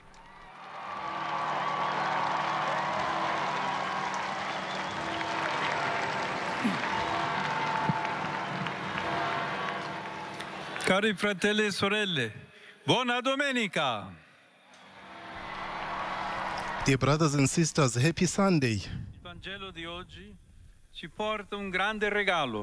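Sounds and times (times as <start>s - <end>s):
large crowd applauding and cheering: 0.0s - 11.0s, 14.8s - 17.6s
high shouts: 0.5s - 10.7s
speech: 10.9s - 14.2s, 16.8s - 20.4s, 21.0s - 22.6s.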